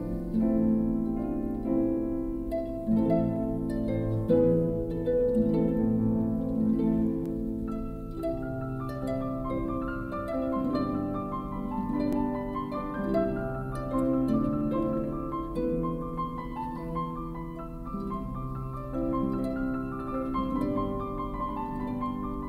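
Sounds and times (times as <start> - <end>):
harp: 0.0 - 22.4
piano: 0.0 - 22.4.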